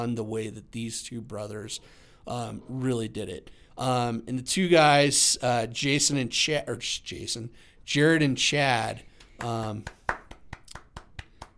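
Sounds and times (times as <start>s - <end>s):
speech: 0.0s - 10.2s
audience hand claps for two brothers from Canada: 9.2s - 11.5s.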